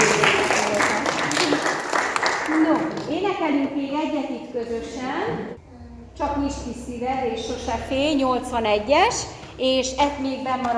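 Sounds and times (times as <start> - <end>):
audience clapping: 0.0 - 3.2
speech: 3.5 - 10.7.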